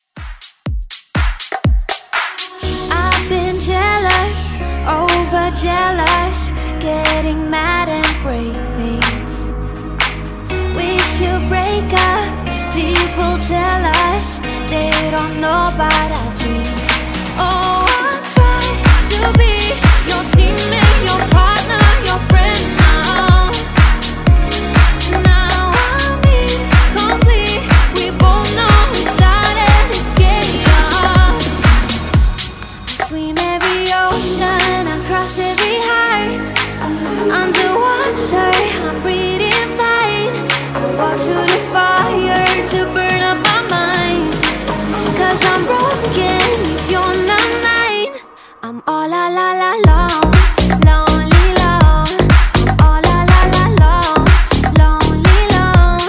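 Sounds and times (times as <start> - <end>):
pop dance music: 0.2 - 56.0.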